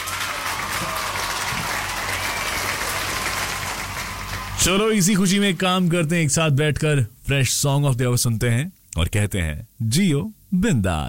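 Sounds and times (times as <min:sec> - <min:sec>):
applause: 0:00.0 - 0:06.0
speech: 0:04.6 - 0:11.0.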